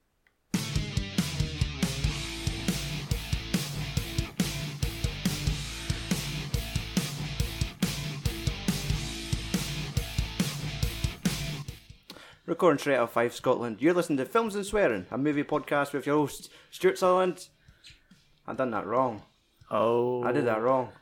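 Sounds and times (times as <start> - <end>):
podcast instrumental theme music with drum beat, chords and bass: 0.5 - 12.2
speech: 12.5 - 17.6, 18.5 - 20.9.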